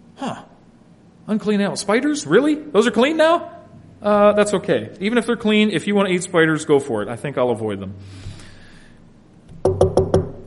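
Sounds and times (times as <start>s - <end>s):
speech: 0.2s - 0.5s, 1.3s - 8.3s
knocking on a door: 9.5s - 10.4s.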